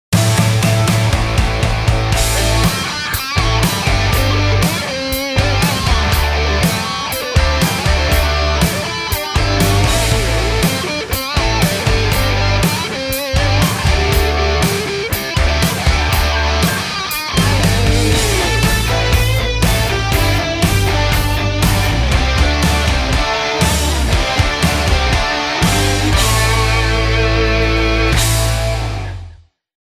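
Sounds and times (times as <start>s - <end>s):
production music: 0.1s - 29.4s.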